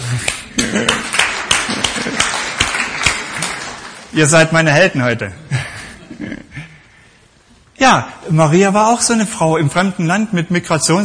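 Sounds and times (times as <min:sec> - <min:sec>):
crowd applauding: 0:00.2 - 0:04.6
speech: 0:04.2 - 0:05.5, 0:07.8 - 0:11.0.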